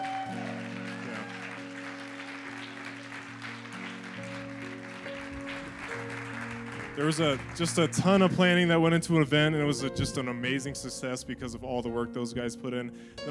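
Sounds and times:
audience applause: 0.0s - 8.8s
speech: 7.0s - 13.2s.

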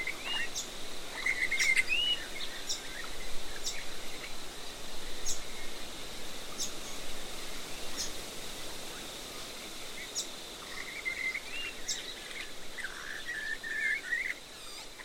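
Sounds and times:
bird calls in a river red gum forest near White Cliffs: 0.0s - 4.3s, 10.0s - 15.0s
high insect drone in a river red gum forest near White Cliffs: 0.0s - 15.0s.

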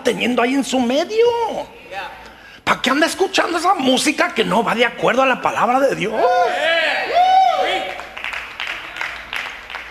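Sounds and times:
speech: 0.1s - 7.1s
brief applause from a few people: 7.4s - 9.9s.

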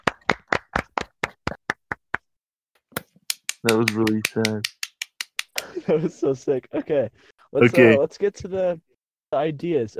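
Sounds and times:
small group clapping hands: 0.0s - 2.3s, 3.0s - 5.8s
speech: 3.6s - 4.8s, 5.8s - 9.9s.

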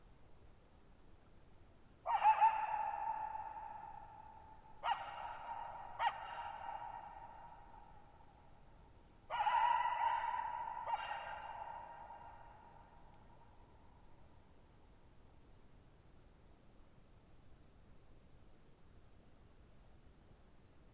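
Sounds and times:
coyote barking: 2.0s - 8.0s, 9.3s - 13.0s.

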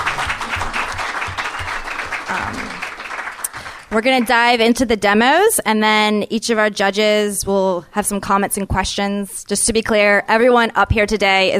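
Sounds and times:
audience applause: 0.0s - 4.0s
speech: 3.9s - 11.5s.

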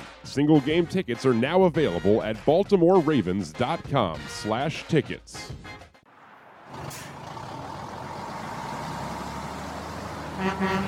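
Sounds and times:
speech: 0.4s - 5.8s, 10.4s - 10.8s
big truck's air brakes hissing: 6.1s - 10.8s
tractor trailer truck horn: 10.1s - 10.8s.

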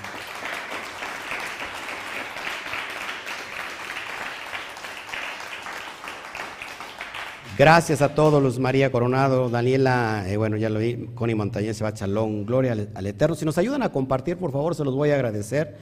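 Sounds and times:
audience applause: 0.0s - 8.0s
speech: 7.6s - 15.7s.

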